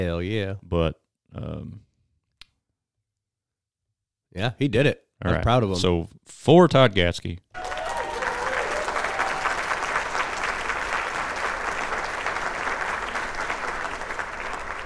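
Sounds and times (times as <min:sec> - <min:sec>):
speech: 0:00.0 - 0:01.9, 0:04.3 - 0:07.7
studio audience applauding and cheering: 0:07.5 - 0:14.8.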